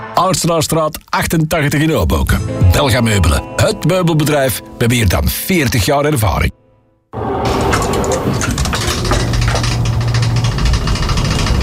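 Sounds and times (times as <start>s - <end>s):
speech: 0.2s - 6.6s
elevator creaking and squeaking: 7.2s - 11.6s.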